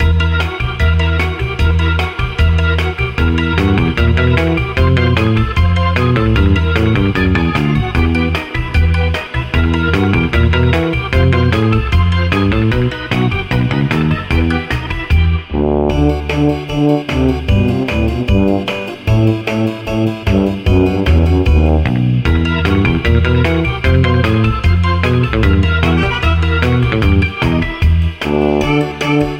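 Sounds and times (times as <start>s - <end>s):
guitar music: 0.0s - 29.3s.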